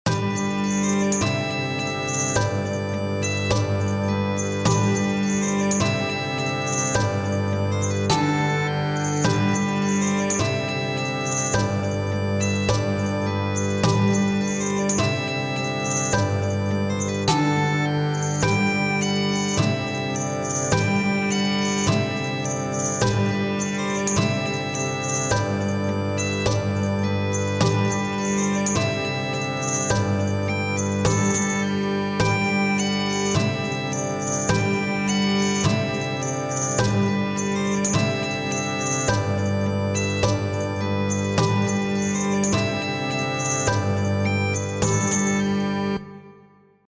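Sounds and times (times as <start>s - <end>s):
bagpipes playing a march: 0.1s - 46.1s.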